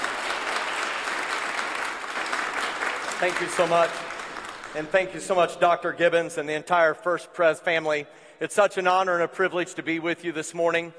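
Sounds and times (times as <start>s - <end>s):
audience applause greeting a guest speaker at a First Presbyterian church gathering: 0.0s - 5.4s
speech: 3.2s - 4.1s, 4.7s - 10.9s.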